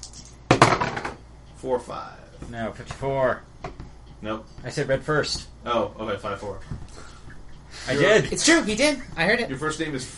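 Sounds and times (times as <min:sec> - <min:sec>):
two six-sided dice rolling: 0:00.0 - 0:01.0
speech: 0:01.6 - 0:07.1, 0:07.8 - 0:10.1.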